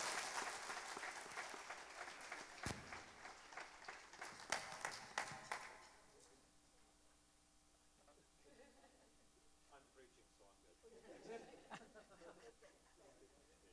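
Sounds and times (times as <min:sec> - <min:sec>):
laughter: 0:00.0 - 0:06.0, 0:08.4 - 0:09.2, 0:10.8 - 0:13.7
audience applause: 0:00.0 - 0:06.2.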